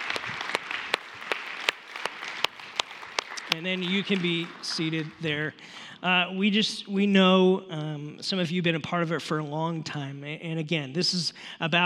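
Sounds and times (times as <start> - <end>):
audience applause: 0.0 - 5.4
speech: 3.5 - 11.8.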